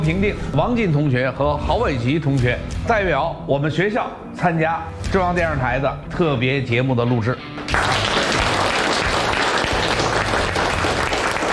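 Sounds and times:
speech: 0.0s - 7.8s
audience applause: 7.7s - 11.5s.

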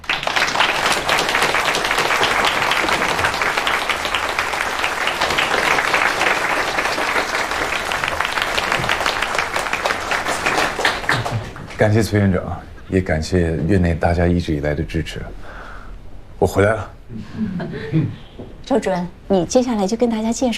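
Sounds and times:
warm applause from meeting audience: 0.0s - 12.3s
speech: 11.8s - 15.5s, 16.4s - 20.5s.

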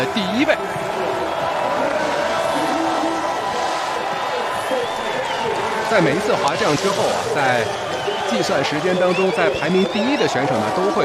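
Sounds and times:
speech: 0.0s - 0.9s, 5.9s - 11.0s
crowd of spectators cheering and shouting at ski race: 0.0s - 11.0s.

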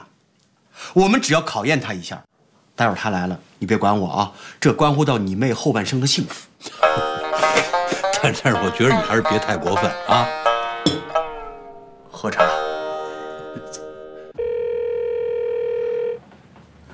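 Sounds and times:
speech: 0.9s - 11.2s, 12.2s - 12.7s
electronic telephone ringing: 14.4s - 16.2s.

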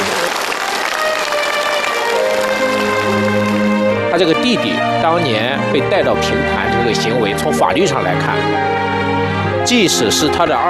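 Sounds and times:
audience applause: 0.0s - 4.4s
speech: 4.2s - 9.1s, 9.7s - 10.6s.

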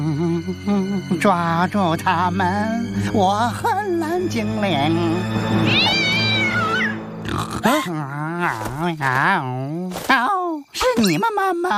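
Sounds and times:
speech: 0.5s - 6.1s, 7.3s - 10.3s, 11.0s - 11.7s
cat meowing and yowling: 5.6s - 7.0s.

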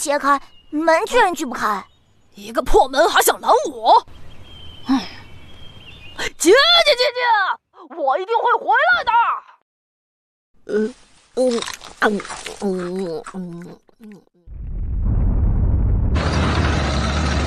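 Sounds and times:
speech: 0.0s - 4.2s, 4.8s - 5.2s, 6.2s - 9.5s, 10.7s - 14.3s
cannon blast from a TV programme: 14.5s - 17.3s.

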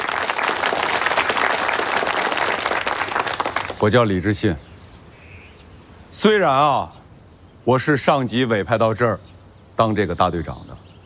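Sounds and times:
audience applauding a newly appointed brigade leader: 0.0s - 4.0s
speech: 3.8s - 4.7s, 6.2s - 7.0s, 7.6s - 10.7s.

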